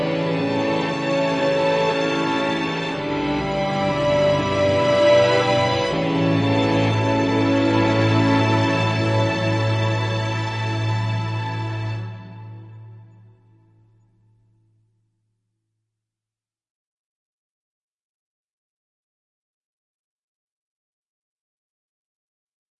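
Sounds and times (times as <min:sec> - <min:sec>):
concerned ambient music: 0:00.0 - 0:14.8.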